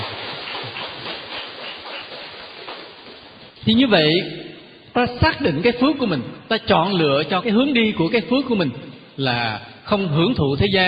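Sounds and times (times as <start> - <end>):
crowd clapping: 0.0 - 3.6
speech: 3.6 - 4.4, 5.0 - 10.8.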